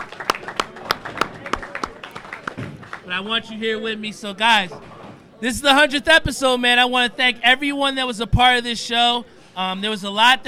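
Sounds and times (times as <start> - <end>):
handclaps in a round of applause: 0.0 - 3.1
low murmur: 0.0 - 10.4
speech: 3.1 - 10.4.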